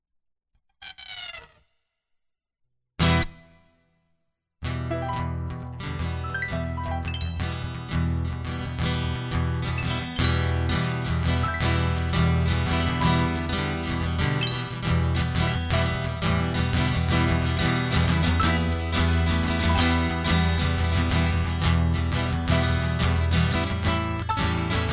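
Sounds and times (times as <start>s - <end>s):
instrumental music: 4.7s - 24.9s.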